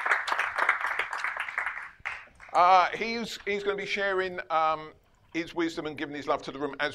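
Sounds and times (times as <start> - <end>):
round of applause: 0.0 - 2.6
speech: 2.6 - 6.9.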